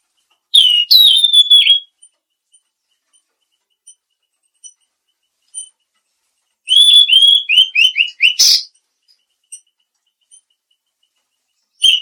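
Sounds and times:
mangrove blue flycatcher whistling: 0:00.6 - 0:01.9, 0:06.7 - 0:08.7, 0:11.8 - 0:12.0.

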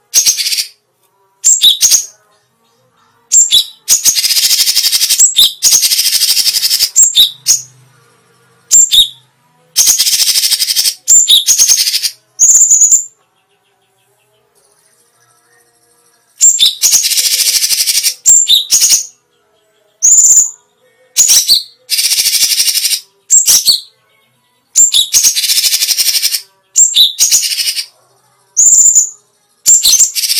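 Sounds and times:
Grey-cheeked Bulbul singing: 0:00.0 - 0:00.8, 0:01.4 - 0:07.9, 0:08.5 - 0:30.3.

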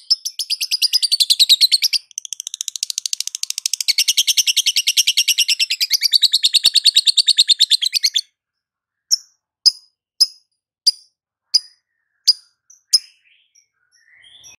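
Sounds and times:
lovebird long chattering calls: 0:00.0 - 0:08.2.

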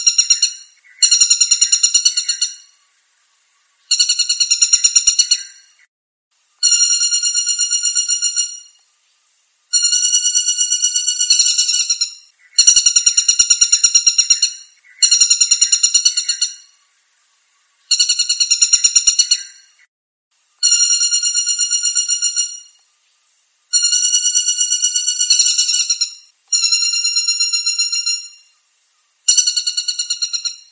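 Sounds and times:
flameback chattering trills: 0:00.0 - 0:02.7, 0:03.9 - 0:05.7, 0:06.6 - 0:08.8, 0:09.7 - 0:16.8, 0:17.9 - 0:19.8, 0:20.6 - 0:22.8, 0:23.7 - 0:28.5, 0:29.3 - 0:30.7.

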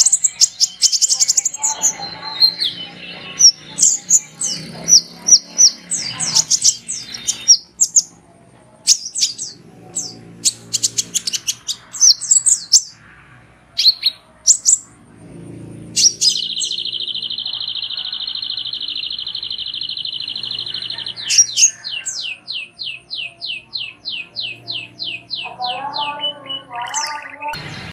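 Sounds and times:
sunbird calls: 0:00.0 - 0:08.2, 0:08.9 - 0:13.0, 0:13.8 - 0:15.0, 0:15.9 - 0:27.7.

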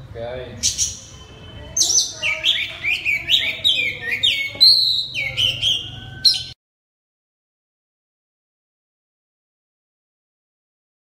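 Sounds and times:
Oriental magpie-robin song: 0:00.6 - 0:06.6.

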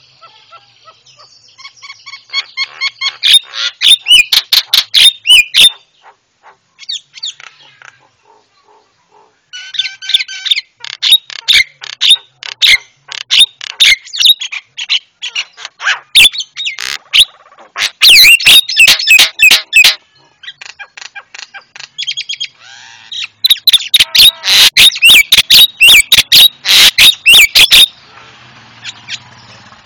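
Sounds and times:
Javan myna singing: 0:02.9 - 0:05.7, 0:09.8 - 0:22.5, 0:23.5 - 0:27.9.

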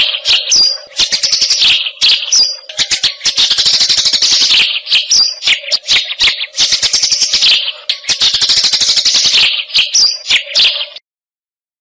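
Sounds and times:
Eurasian tree sparrow harsh chirps: 0:00.0 - 0:11.0.

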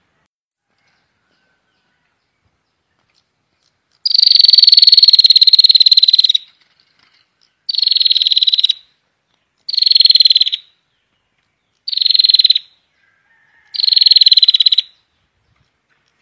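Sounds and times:
prinia buzzy rattling call bursts: 0:04.0 - 0:08.9, 0:09.6 - 0:10.8, 0:11.8 - 0:12.8, 0:13.6 - 0:15.0.

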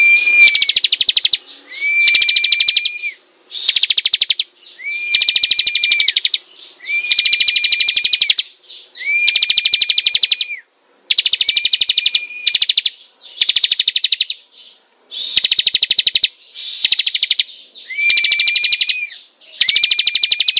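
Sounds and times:
bar-winged prinia clicking calls: 0:00.4 - 0:01.4, 0:02.0 - 0:03.0, 0:03.6 - 0:04.5, 0:05.1 - 0:06.4, 0:07.1 - 0:08.5, 0:09.2 - 0:10.5, 0:11.1 - 0:14.4, 0:15.3 - 0:20.5.

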